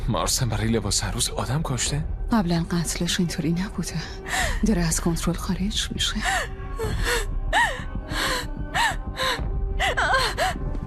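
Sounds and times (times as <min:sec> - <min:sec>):
speech: 0:00.1 - 0:07.2
injured person gasping for breath and moaning: 0:06.8 - 0:10.7.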